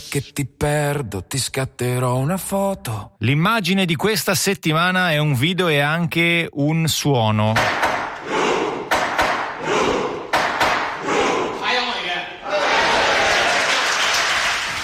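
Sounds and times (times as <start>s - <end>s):
speech: 0.1s - 7.9s
judge's gavel banged on a desk in the Norwegian Parliament: 7.6s - 11.5s
crowd clamor and voices in the Norwegian Parliament: 8.2s - 14.0s.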